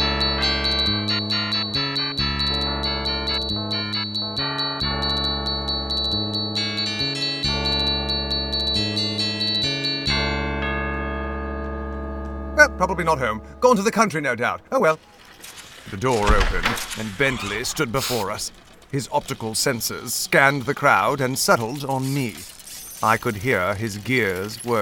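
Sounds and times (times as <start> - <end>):
electronic doorbell chime tune: 0.0 - 13.8
speech: 12.8 - 15.2, 15.9 - 24.8.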